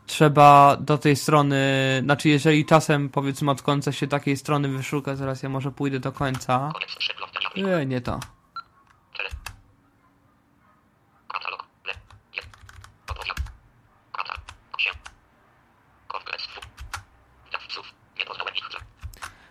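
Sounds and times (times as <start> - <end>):
speech: 0.2 - 8.4
computer keyboard arrow keys and K key clicking: 6.0 - 6.5, 8.1 - 9.7, 11.4 - 15.2, 16.5 - 17.1, 17.8 - 19.4.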